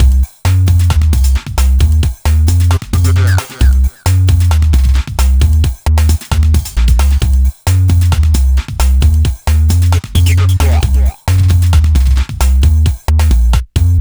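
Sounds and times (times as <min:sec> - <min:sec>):
hardcore breakbeat roller music at 133 BPM: 0:00.0 - 0:13.9.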